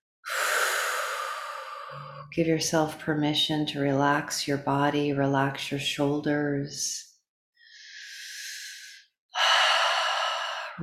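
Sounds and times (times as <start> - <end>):
person breathing slowly during a guided relaxation exercise: 0.3 - 2.3, 7.6 - 10.8
speech: 1.9 - 7.1.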